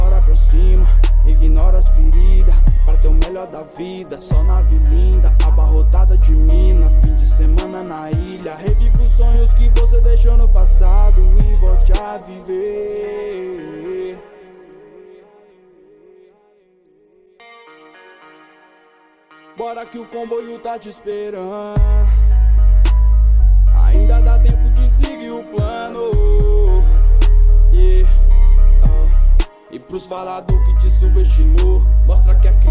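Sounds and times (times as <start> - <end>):
deep bass: 0.0 - 3.3, 4.3 - 7.6, 8.7 - 12.0, 21.8 - 25.1, 26.2 - 29.4, 30.5 - 32.7.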